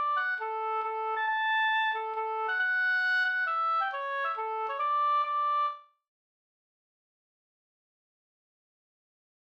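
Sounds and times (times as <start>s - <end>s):
hambo polska folk dance tune: 0.0s - 5.8s.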